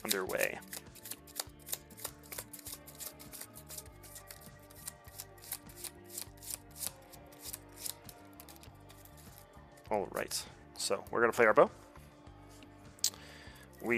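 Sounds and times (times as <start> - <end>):
speech: 0.0 - 0.8, 9.9 - 11.8
shuffling a deck of cards: 0.0 - 9.4.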